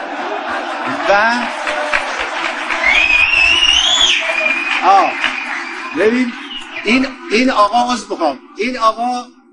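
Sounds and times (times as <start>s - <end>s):
laughter: 0.0s - 9.1s
speech: 1.1s - 1.6s, 4.8s - 5.3s, 5.9s - 9.4s
loud two-finger whistling from audience member: 2.8s - 7.1s.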